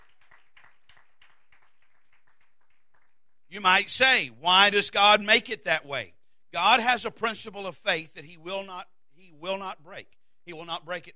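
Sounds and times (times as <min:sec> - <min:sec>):
audience clapping hands in praise: 0:00.0 - 0:03.4
speech: 0:03.5 - 0:11.1.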